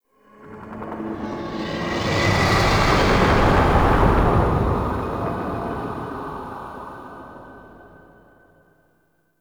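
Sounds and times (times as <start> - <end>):
spectral whoosh: 1.0 - 7.2.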